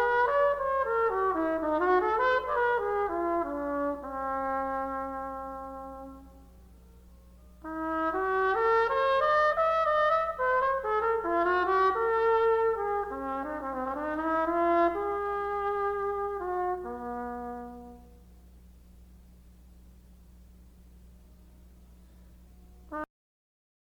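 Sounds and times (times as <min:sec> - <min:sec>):
trumpet playing an intro: 0:00.0 - 0:06.9, 0:07.6 - 0:18.5, 0:22.9 - 0:23.1.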